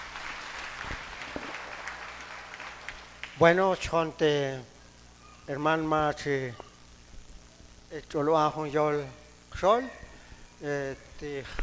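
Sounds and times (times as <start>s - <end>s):
audience applause: 0.0s - 3.6s
speech: 3.4s - 4.7s, 5.5s - 6.6s, 7.9s - 10.0s, 10.6s - 11.6s.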